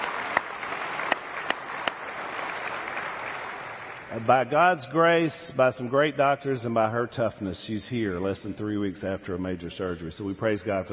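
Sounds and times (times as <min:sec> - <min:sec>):
audience applause: 0:00.0 - 0:04.2
speech: 0:04.1 - 0:10.9.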